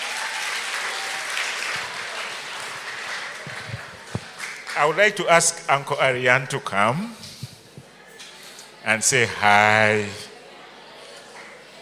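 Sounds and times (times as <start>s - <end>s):
audience hand clapping: 0.0s - 4.8s
speech: 4.8s - 7.2s, 8.8s - 10.2s.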